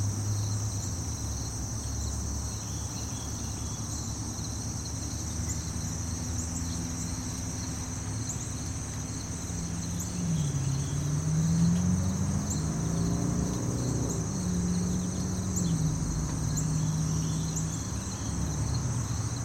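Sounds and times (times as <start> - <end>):
continuous low traffic rumble: 0.0 - 19.4
crickets trilling in a city park in late summer: 0.0 - 19.4
wavering engine-like drone: 5.4 - 19.4.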